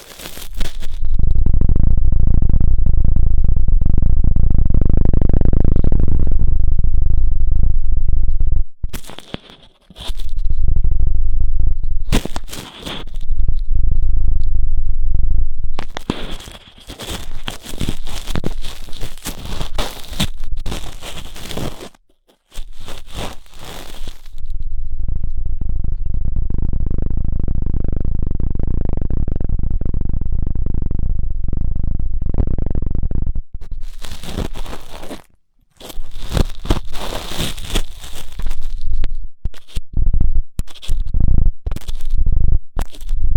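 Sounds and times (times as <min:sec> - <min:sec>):
scratchy crackling ear cleaning rubbing: 0:00.0 - 0:01.1, 0:08.9 - 0:10.6, 0:12.0 - 0:13.7, 0:15.7 - 0:25.0, 0:33.6 - 0:43.3
deep swelling rumble styled as a helicopter: 0:00.0 - 0:21.9, 0:22.6 - 0:43.3.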